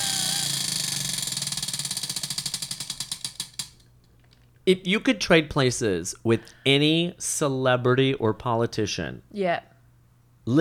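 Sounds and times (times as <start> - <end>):
spinning question wheel clicking: 0.0 - 4.4
speech: 4.7 - 9.7.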